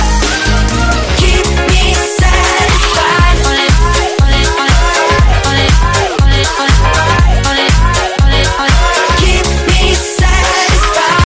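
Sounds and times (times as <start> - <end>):
hot electro ringtone: 0.0 - 11.2.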